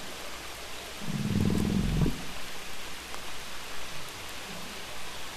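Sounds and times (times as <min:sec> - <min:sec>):
humpback whale wheezing blow: 0:00.9 - 0:02.4.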